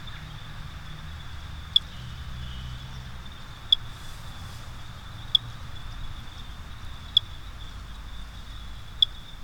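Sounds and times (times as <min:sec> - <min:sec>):
Great Thrush chirping, Turdus fuscater, in Bogotá Colombia: 0:01.8 - 0:09.3.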